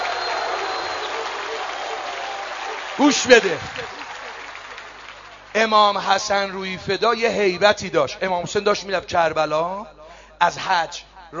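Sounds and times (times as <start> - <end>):
audience applause: 0.0 - 6.7
speech: 3.0 - 4.0, 5.6 - 11.3.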